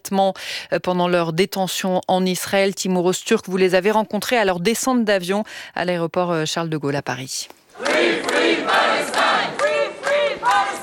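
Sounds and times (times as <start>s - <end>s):
speech: 0.1s - 8.8s
crowd applauding: 7.8s - 10.8s.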